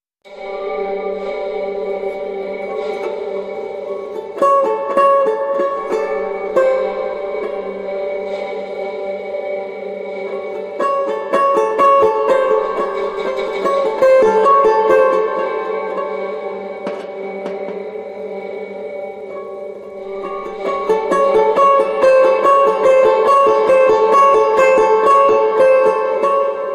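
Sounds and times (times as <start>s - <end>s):
suspense music: 0.3s - 26.7s.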